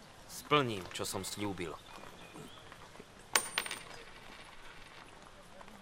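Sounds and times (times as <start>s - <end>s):
speech: 0.5s - 1.9s
single coin dropping on a hard surface: 3.3s - 5.0s.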